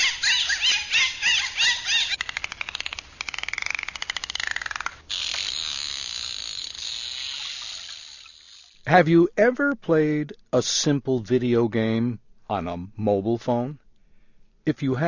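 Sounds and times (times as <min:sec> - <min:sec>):
dolphin whistles and clicks: 0:00.0 - 0:05.6
hiss: 0:02.0 - 0:15.0
speech: 0:08.9 - 0:13.8, 0:14.6 - 0:15.0.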